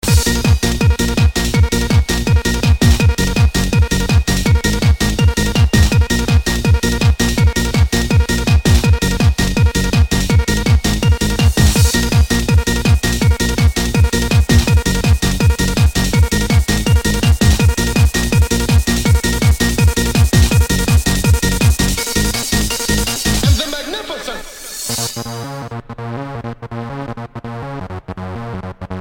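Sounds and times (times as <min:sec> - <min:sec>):
tunnel trance music: 0:00.0 - 0:29.0
laughter: 0:23.4 - 0:24.9.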